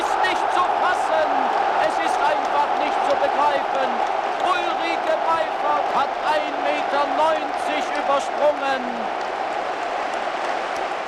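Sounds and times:
stadium crowd cheering: 0:00.0 - 0:11.0.

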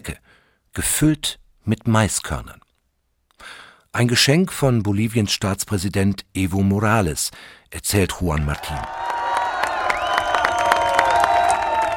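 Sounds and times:
speech: 0:00.0 - 0:02.6, 0:03.4 - 0:09.1
tens of thousands of Bolivians cheering outside the presidential palace in La Paz: 0:08.5 - 0:11.9.

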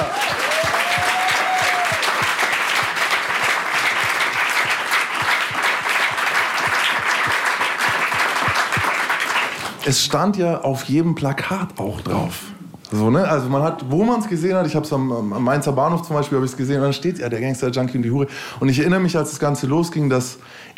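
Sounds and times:
audience applause: 0:00.0 - 0:09.8
speech: 0:09.8 - 0:20.7.

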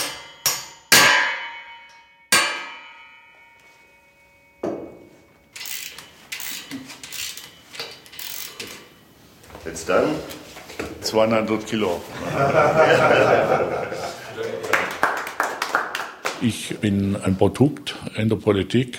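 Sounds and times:
metallic clangs: 0:00.0 - 0:09.1
speech: 0:09.7 - 0:10.4, 0:11.1 - 0:13.9, 0:16.4 - 0:18.9
laughter: 0:12.1 - 0:15.1.

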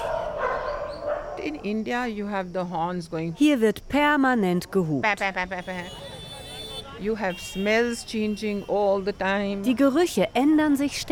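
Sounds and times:
guide dog barking: 0:00.0 - 0:01.7
speech: 0:01.4 - 0:06.0, 0:07.0 - 0:11.1.

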